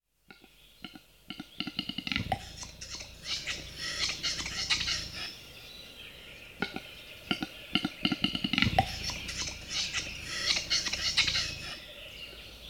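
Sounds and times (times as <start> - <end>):
Western capercaillie display: 1.5 - 5.3, 7.8 - 11.8.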